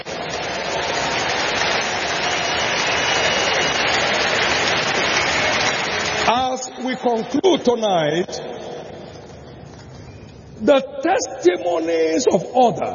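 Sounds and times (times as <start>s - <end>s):
audience applauding: 0.0s - 7.5s
speech: 6.9s - 8.5s, 10.6s - 12.9s.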